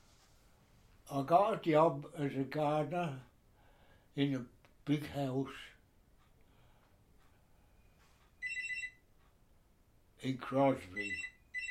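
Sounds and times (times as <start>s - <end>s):
low noise: 0.0s - 11.6s
speech: 1.1s - 3.3s, 4.2s - 5.7s, 10.2s - 11.3s
telephone ringing with an electronic trill: 8.4s - 9.1s, 10.9s - 11.6s.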